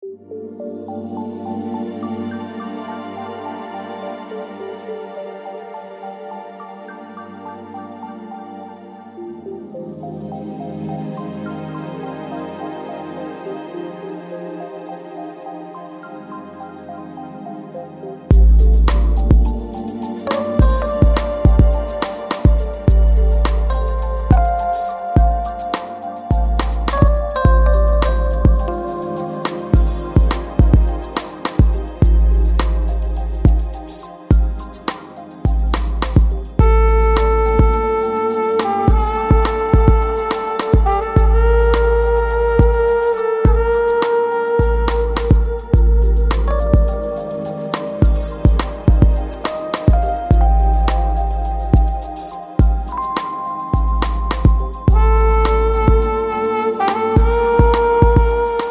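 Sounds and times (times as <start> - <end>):
jazzy lounge music: 18.3 - 58.6.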